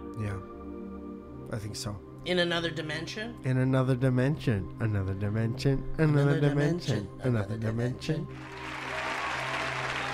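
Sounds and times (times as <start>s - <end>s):
speech: 1.5s - 8.8s
crowd applause: 8.4s - 10.1s.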